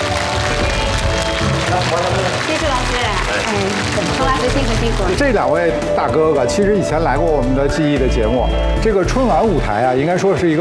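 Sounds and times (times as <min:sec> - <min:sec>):
crowd clapping: 0:00.0 - 0:06.5
speech: 0:01.9 - 0:10.6.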